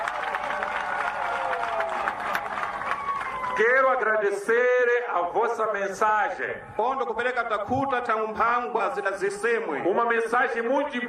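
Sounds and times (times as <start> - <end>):
audience applause: 0.0 - 3.7
people cheering: 0.0 - 4.2
speech: 3.6 - 11.0.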